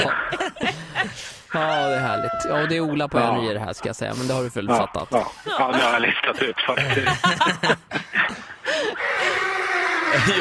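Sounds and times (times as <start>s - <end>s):
laughter: 0.0s - 2.8s, 5.2s - 10.3s
speech: 0.0s - 9.0s, 10.1s - 10.3s
person imitating horse neigh: 1.5s - 2.8s, 9.0s - 10.3s.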